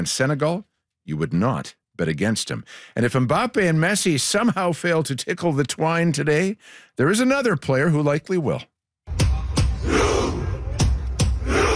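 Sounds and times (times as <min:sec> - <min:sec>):
speech: 0:00.0 - 0:09.2
football fans shouting a chant at a match: 0:09.4 - 0:11.7.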